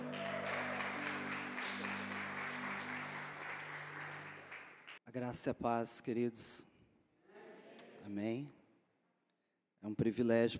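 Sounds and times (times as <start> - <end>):
audience applauding: 0.0 - 5.0
speech: 5.2 - 6.7, 8.1 - 8.6, 9.8 - 10.5.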